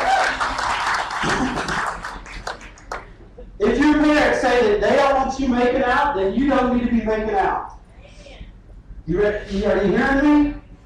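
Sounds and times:
audience hand clapping: 0.0s - 3.2s
speech: 4.6s - 7.6s, 9.1s - 10.5s.

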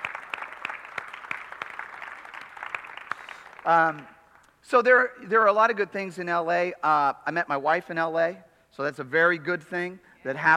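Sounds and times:
congregation clapping for children at a baptism service: 0.0s - 4.6s
speech: 3.6s - 10.5s.

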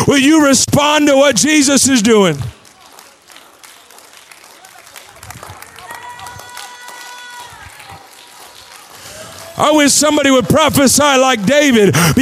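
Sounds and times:
speech: 0.1s - 2.6s, 9.6s - 12.1s
audience clapping: 2.0s - 11.8s.

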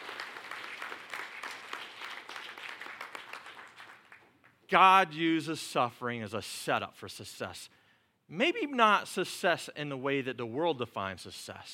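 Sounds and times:
audience applause: 0.0s - 4.3s
speech: 4.7s - 11.7s.

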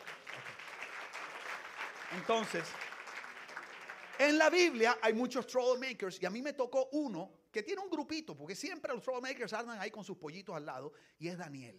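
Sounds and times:
audience applause: 0.0s - 4.8s
speech: 2.1s - 2.9s, 4.2s - 11.7s.

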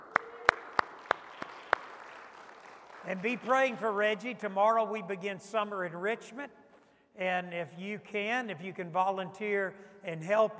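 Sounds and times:
audience round of applause: 0.0s - 3.4s
speech: 3.0s - 6.6s, 7.2s - 10.5s.

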